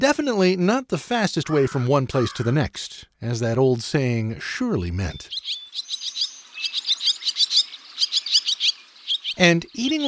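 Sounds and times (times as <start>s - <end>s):
speech: 0.0s - 6.0s, 9.4s - 10.0s
barn swallows twittering: 5.1s - 10.0s.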